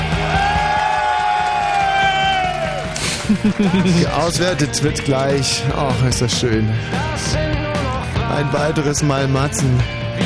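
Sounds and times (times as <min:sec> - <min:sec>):
crowd cheering and whooping: 0:00.0 - 0:05.0
laughter: 0:02.8 - 0:04.7
speech: 0:03.3 - 0:07.6, 0:08.3 - 0:10.2.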